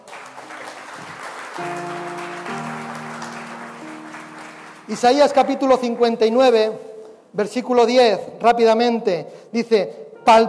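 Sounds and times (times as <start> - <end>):
crowd clapping: 0.0 - 5.9
sustained organ-like chords: 0.2 - 5.6
speech: 1.6 - 1.9, 4.9 - 10.4.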